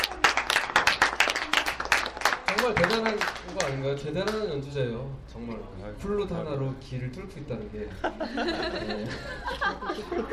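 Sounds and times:
small group applause: 0:00.0 - 0:04.4
speech: 0:02.7 - 0:10.3
laughter: 0:07.9 - 0:10.3.

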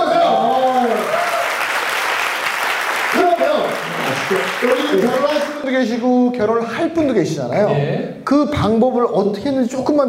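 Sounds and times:
audience applause: 0:00.4 - 0:05.6
speech: 0:04.3 - 0:10.0.

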